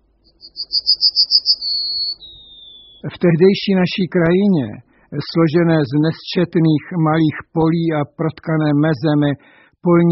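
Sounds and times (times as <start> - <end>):
yellowhammer singing: 0.2 - 3.2
speech: 1.7 - 2.4, 3.0 - 10.1.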